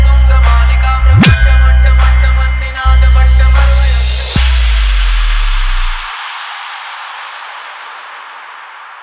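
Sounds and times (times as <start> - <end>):
hard vibration bass fast mix: 0.0 - 6.1.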